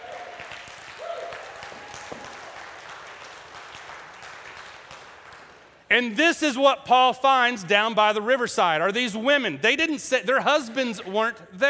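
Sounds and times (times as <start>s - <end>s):
audience clapping hands: 0.0s - 5.9s
speech: 5.9s - 11.6s.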